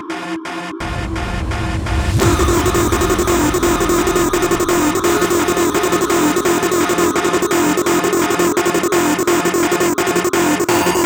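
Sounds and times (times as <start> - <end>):
generic bassline: 0.1 - 11.0.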